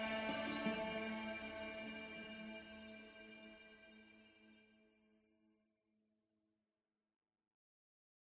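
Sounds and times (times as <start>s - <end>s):
peaceful alpine ambience: 0.0s - 4.5s.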